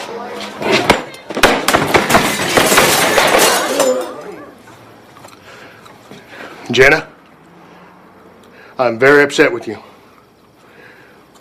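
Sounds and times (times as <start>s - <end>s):
chair thrown across a room, crashing: 0.6s - 4.4s
speech: 6.7s - 7.1s, 8.8s - 9.9s.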